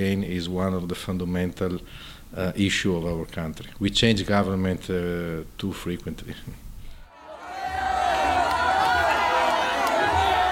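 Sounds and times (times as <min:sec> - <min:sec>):
speech: 0:00.0 - 0:06.6
crowds cheering Matteo Salvini at a League party rally: 0:07.1 - 0:10.5.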